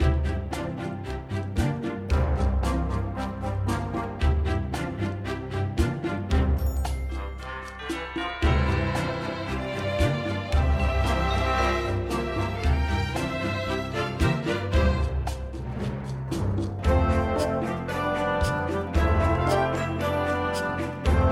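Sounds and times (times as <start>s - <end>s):
game music loop: 0.0s - 21.3s.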